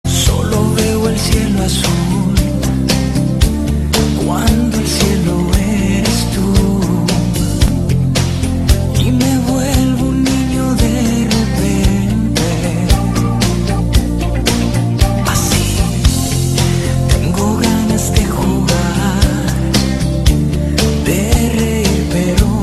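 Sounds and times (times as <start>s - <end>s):
romantic music: 0.1s - 22.6s.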